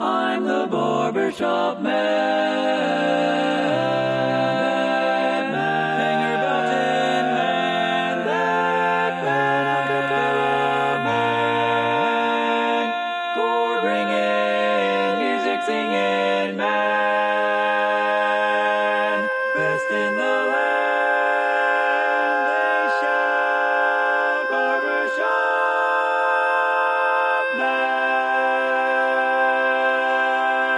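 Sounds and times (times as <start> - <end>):
barbershop tenor singing: 0.0 - 30.7.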